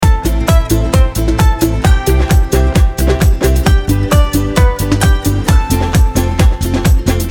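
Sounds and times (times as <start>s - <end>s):
country dance pop loop: 0.0s - 7.2s.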